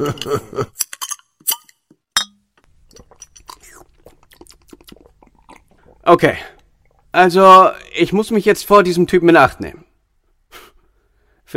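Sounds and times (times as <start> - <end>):
speech: 0.0 - 0.8, 6.1 - 6.5, 7.2 - 9.9
beer glass clinking: 1.1 - 2.4
person sipping a drink: 2.6 - 7.2.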